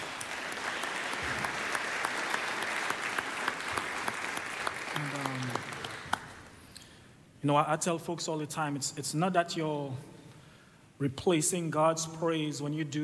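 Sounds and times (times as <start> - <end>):
audience applause: 0.0 - 6.5
speech: 7.4 - 10.1, 11.0 - 13.0.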